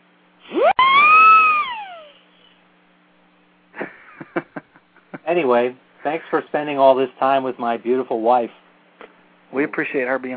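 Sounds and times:
little mechanical device siren: 0:00.5 - 0:02.2
speech: 0:05.3 - 0:08.6, 0:09.5 - 0:10.3.

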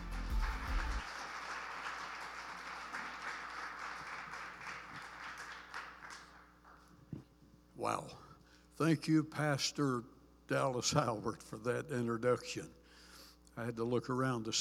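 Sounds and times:
audience applause welcoming a guest speaker at a church service: 0:00.0 - 0:06.9
speech: 0:07.8 - 0:08.2, 0:08.8 - 0:12.8, 0:13.6 - 0:14.6.

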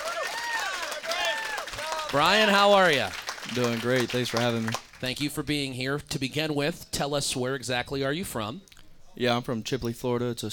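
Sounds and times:
audience applause: 0:00.0 - 0:05.0
speech: 0:02.1 - 0:10.5.

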